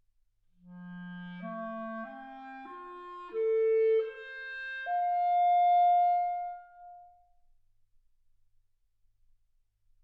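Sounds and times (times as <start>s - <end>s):
clarinet: 0.6s - 7.3s.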